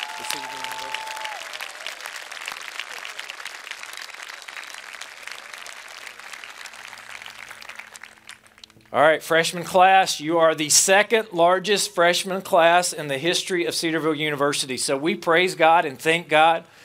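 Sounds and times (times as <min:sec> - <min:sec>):
large audience applause: 0:00.0 - 0:08.7
speech: 0:00.2 - 0:01.2, 0:08.9 - 0:16.8.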